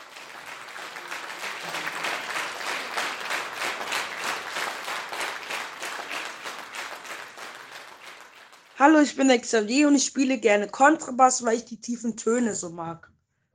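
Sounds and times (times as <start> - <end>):
roaring recorded studio audience applause: 0.0 - 8.9
speech: 8.8 - 13.1.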